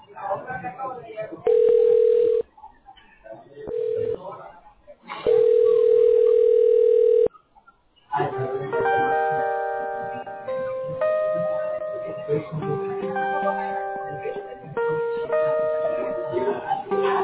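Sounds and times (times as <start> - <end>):
voices talking: 0.0 - 17.2
telephone ringing tone over a phone line: 1.5 - 2.4, 3.7 - 4.2, 5.3 - 7.3.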